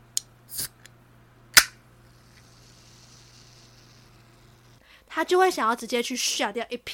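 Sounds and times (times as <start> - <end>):
faint low hum: 0.0 - 5.8
drink can cracking open: 0.5 - 0.7
speech: 5.2 - 6.9.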